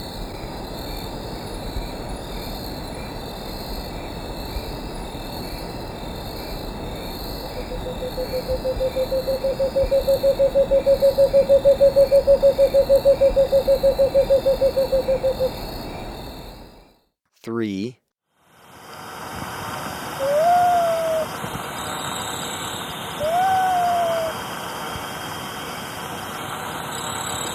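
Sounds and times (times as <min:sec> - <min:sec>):
Cinnamon Screech-Owl calling in Ecuador: 0:07.0 - 0:15.8, 0:20.2 - 0:21.3, 0:23.2 - 0:24.4.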